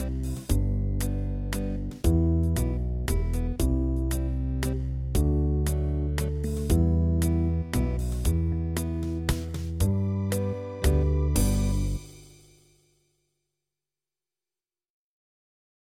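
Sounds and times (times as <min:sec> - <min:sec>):
waltz music: 0:00.0 - 0:12.3.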